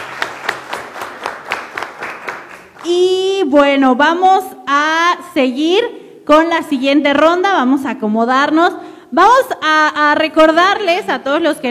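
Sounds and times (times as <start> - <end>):
audience applause for contestants at a quiz competition: 0.0 - 2.8
speech: 2.9 - 11.6.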